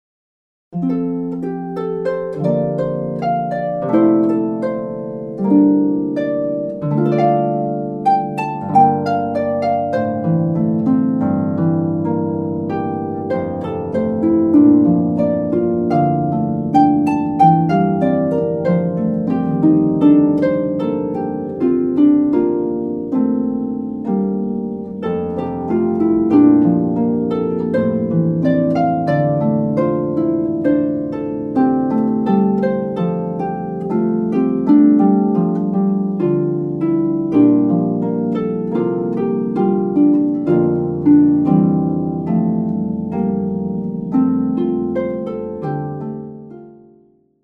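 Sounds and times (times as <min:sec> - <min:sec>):
harp: 0:00.7 - 0:47.4.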